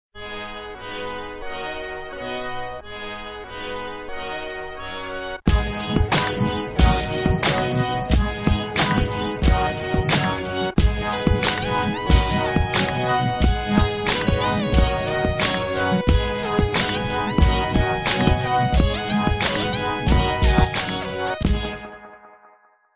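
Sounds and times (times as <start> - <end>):
hip hop music: 5.5 - 22.1.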